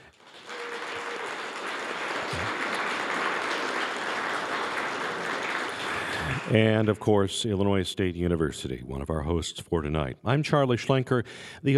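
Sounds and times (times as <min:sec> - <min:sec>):
audience applause: 0:00.0 - 0:06.9
speech: 0:06.5 - 0:11.7.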